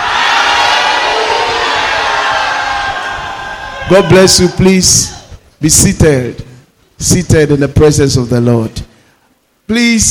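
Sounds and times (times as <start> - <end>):
audience shouting hallelujah: 0.0 - 5.3
speech: 3.9 - 8.9, 9.7 - 10.0.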